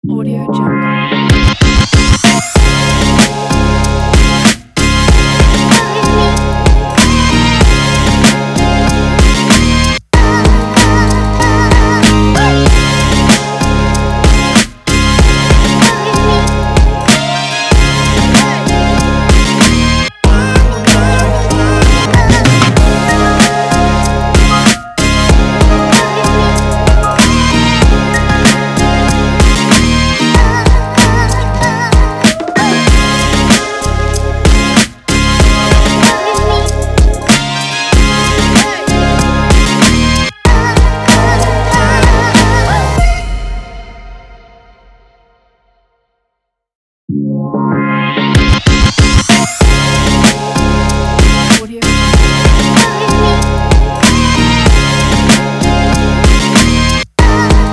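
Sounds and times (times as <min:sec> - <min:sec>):
hip hop music: 0:00.0 - 0:44.1, 0:47.7 - 0:57.7.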